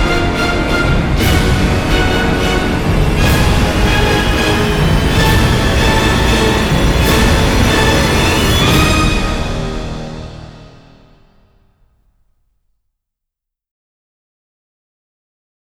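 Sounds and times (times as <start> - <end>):
orchestra: 0.0 - 11.6.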